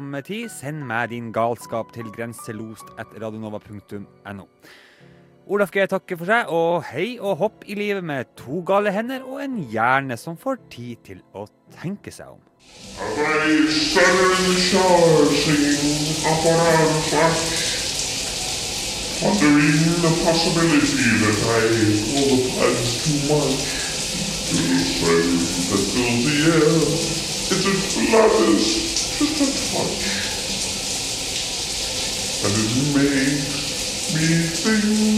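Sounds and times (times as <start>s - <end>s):
speech: 0.0s - 17.7s, 19.2s - 23.8s, 24.5s - 30.2s, 32.4s - 35.1s
shower running: 12.6s - 35.1s.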